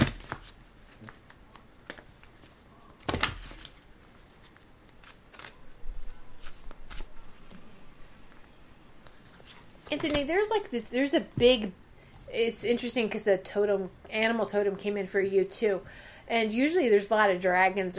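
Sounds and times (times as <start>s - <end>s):
tarot cards being shuffled and pulled for a reading: 0.0s - 7.6s
speech: 10.0s - 17.9s.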